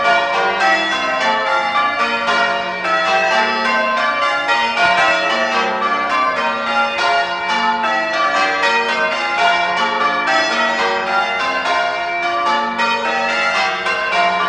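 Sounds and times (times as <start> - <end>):
church bells ringing changes: 0.0 - 14.4.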